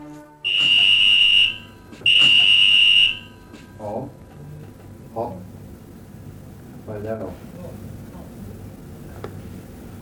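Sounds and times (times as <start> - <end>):
ambulance station alarm signals: 0.4 - 3.4.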